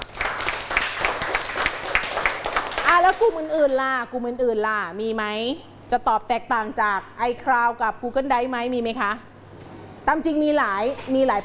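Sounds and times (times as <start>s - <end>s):
classroom applause for a student: 0.0s - 3.8s
speech: 3.0s - 9.3s, 10.1s - 11.4s.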